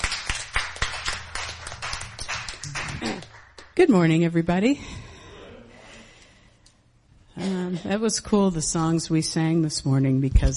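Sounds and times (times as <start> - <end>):
audience cheering: 0.0 - 3.4
audience clapping: 0.0 - 4.1
speech: 3.8 - 5.0, 7.9 - 10.5.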